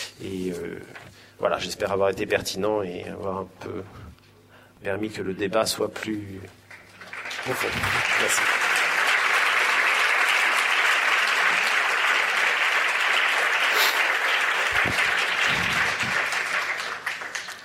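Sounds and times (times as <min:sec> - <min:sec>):
speech: 0:00.2 - 0:04.1, 0:04.8 - 0:06.6, 0:07.4 - 0:08.6
audience applause: 0:06.7 - 0:17.6.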